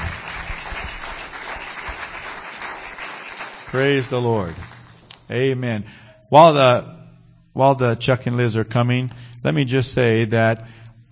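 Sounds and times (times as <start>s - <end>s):
audience clapping hands: 0.0s - 5.3s
speech: 3.7s - 4.7s, 5.3s - 7.0s, 7.6s - 10.8s.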